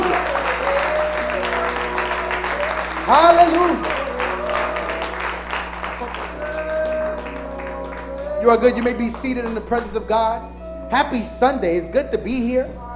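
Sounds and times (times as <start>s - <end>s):
audience applause: 0.0s - 10.0s
speech: 3.1s - 3.9s, 8.4s - 12.8s.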